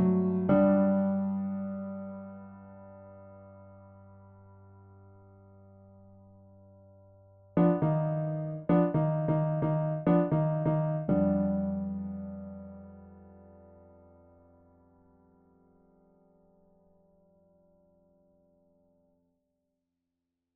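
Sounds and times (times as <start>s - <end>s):
improvised piano prelude: 0.0s - 3.8s, 7.6s - 14.2s.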